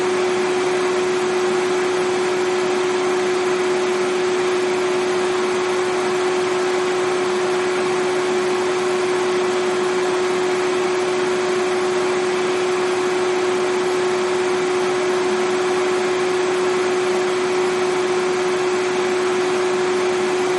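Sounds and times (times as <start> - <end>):
vacuum cleaner running: 0.0 - 20.5.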